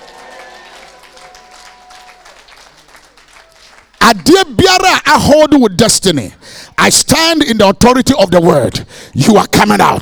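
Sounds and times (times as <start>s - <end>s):
audience shouting: 0.0s - 3.8s
audience clapping: 0.0s - 4.7s
speech: 4.1s - 9.9s.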